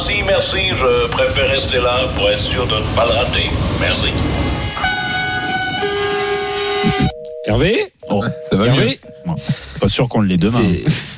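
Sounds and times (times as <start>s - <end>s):
train rolling rumble on the railway track: 0.0s - 7.1s
speech: 0.1s - 4.7s, 7.4s - 11.1s
train horn as it arrives along the railway track: 4.4s - 7.0s.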